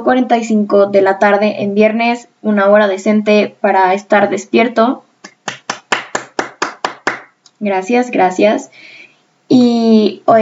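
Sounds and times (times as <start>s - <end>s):
speech: 0.0s - 5.0s, 7.6s - 10.4s
applause: 5.3s - 7.3s.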